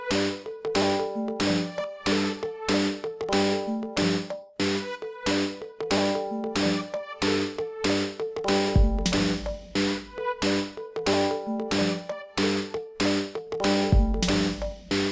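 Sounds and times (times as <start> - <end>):
gamelan: 0.0 - 15.1.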